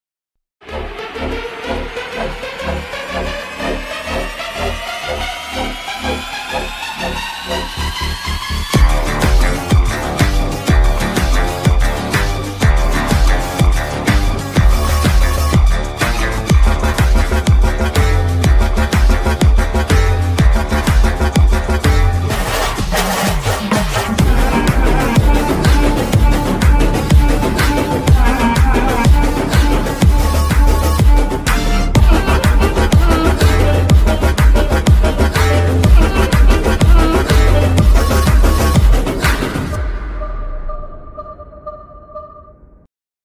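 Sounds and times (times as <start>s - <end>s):
animal background music loop mix: 0.6s - 42.4s.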